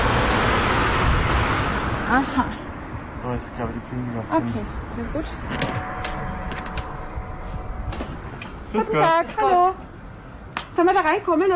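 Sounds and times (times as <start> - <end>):
cars thundering along a small village street: 0.0 - 9.2
speech: 2.1 - 2.6, 3.3 - 6.0, 8.7 - 9.9, 10.8 - 11.5.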